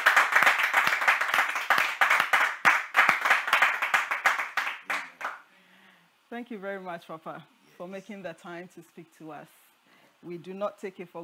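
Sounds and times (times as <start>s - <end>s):
audience clapping to welcome a speaker: 0.0s - 5.5s
speech: 6.4s - 9.6s, 10.2s - 11.2s.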